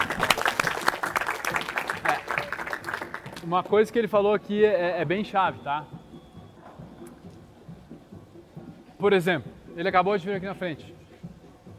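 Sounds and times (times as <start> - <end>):
audience applause: 0.0 - 3.8
speech: 3.4 - 6.0, 9.0 - 10.9.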